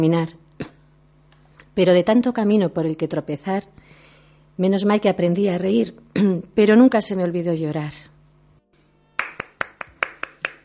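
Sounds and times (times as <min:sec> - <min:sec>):
speech: 0:00.0 - 0:00.4, 0:01.8 - 0:03.9, 0:04.6 - 0:08.1
applause: 0:09.2 - 0:10.6.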